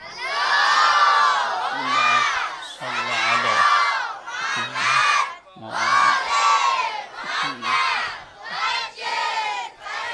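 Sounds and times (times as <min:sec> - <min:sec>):
crowd reciting salawat in unison: 0:00.0 - 0:10.1.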